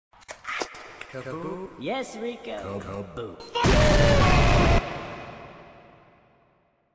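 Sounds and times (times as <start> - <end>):
explosion: 3.6 - 6.6.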